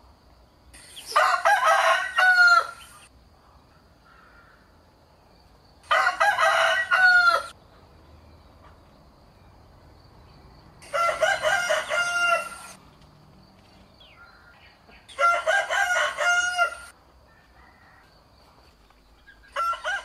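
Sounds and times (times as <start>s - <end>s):
rooster crowing: 1.1s - 2.9s, 5.8s - 7.6s, 10.8s - 12.8s, 14.2s - 18.2s, 19.4s - 20.0s.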